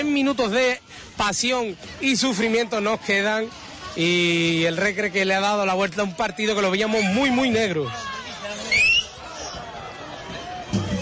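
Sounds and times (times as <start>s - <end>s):
speech: 0.0s - 8.1s
whistle at a football stadium: 8.7s - 9.2s.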